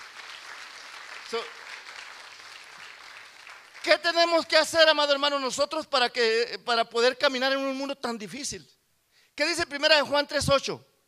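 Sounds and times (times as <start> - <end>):
audience applauding: 0.0 - 4.4
speech: 1.3 - 1.6, 3.8 - 8.8, 9.4 - 10.9.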